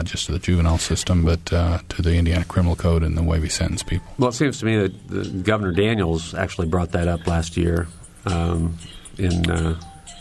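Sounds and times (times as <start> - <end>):
speech: 0.0 - 9.9
phone ringing: 3.4 - 10.2.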